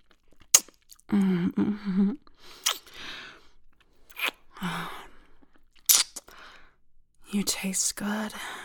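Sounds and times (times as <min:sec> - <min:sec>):
wet smacking kisses: 0:00.5 - 0:01.0, 0:02.6 - 0:03.0, 0:04.1 - 0:04.4, 0:05.8 - 0:06.3
speech: 0:01.1 - 0:02.6, 0:07.4 - 0:08.6.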